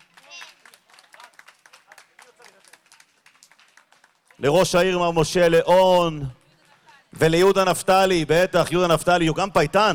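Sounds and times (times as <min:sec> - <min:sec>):
audience applause: 0:00.0 - 0:04.6
speech: 0:04.4 - 0:06.4, 0:07.2 - 0:09.9.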